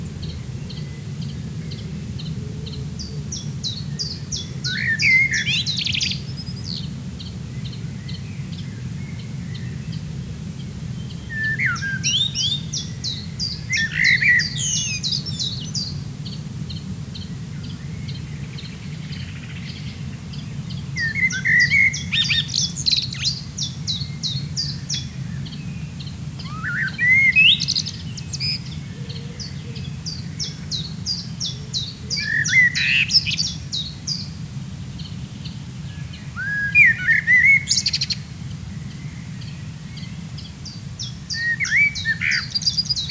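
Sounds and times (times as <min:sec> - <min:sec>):
common blackbird singing: 0:02.7 - 0:06.9, 0:11.0 - 0:16.0, 0:17.2 - 0:34.3, 0:35.0 - 0:38.3, 0:38.9 - 0:43.0.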